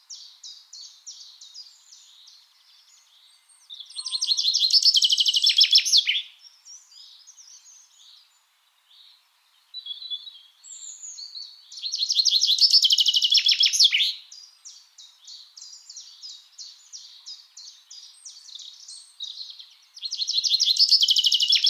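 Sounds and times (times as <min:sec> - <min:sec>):
Common chaffinch (Fringilla coelebs) song: 0:00.0 - 0:21.6.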